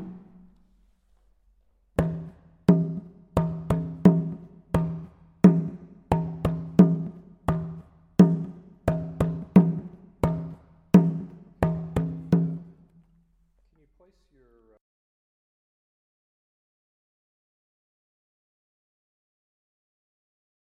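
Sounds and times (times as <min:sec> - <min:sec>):
atsia examples on gankogui axatse kaganu kidi sogo: 0:02.0 - 0:12.7.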